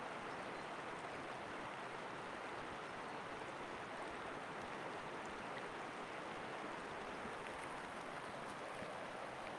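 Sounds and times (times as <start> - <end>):
river flowing: 0.0 - 9.5.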